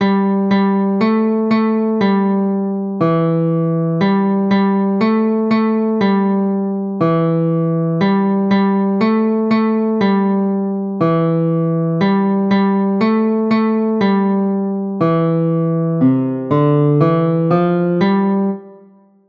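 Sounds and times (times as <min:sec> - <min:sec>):
music: 0:00.0 - 0:19.2.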